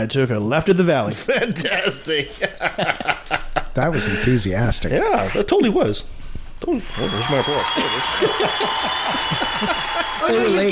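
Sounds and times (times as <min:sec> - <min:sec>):
speech: 0:00.0 - 0:10.7
laughter: 0:01.2 - 0:04.4, 0:07.0 - 0:10.7
canned studio audience applause: 0:06.8 - 0:10.7
whoops: 0:06.9 - 0:10.5.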